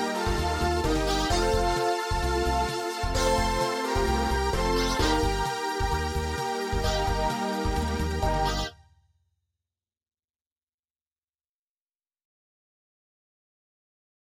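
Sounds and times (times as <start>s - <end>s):
MIDI music: 0.0s - 8.8s.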